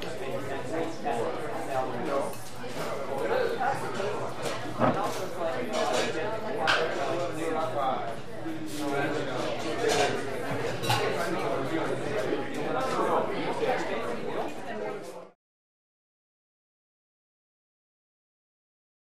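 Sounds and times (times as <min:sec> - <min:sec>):
coffee shop restaurant walla: 0:00.0 - 0:15.4
loud dish movement and set downs: 0:04.5 - 0:06.9.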